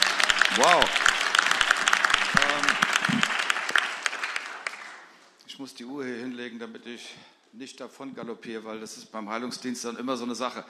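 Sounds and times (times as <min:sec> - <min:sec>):
audience applause: 0:00.0 - 0:05.1
speech: 0:00.5 - 0:01.0, 0:05.6 - 0:10.6.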